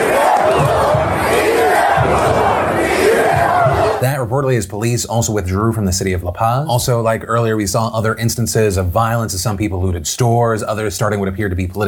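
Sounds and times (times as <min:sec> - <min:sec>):
large crowd chanting in protest: 0:00.0 - 0:04.0
speech: 0:04.2 - 0:11.8.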